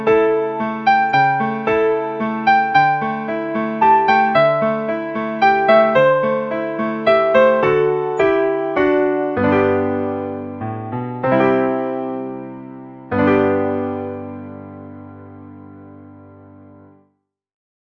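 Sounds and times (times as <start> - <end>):
melody sketch: 0.3 - 14.4.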